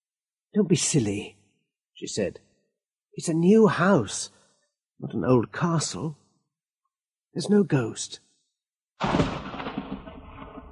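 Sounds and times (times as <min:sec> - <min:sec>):
speech: 0:00.5 - 0:01.4, 0:02.0 - 0:02.5, 0:03.2 - 0:04.4, 0:05.0 - 0:06.2, 0:07.4 - 0:08.2, 0:09.0 - 0:09.3
loud crack of thunder with deep rumbling roar: 0:09.0 - 0:10.7.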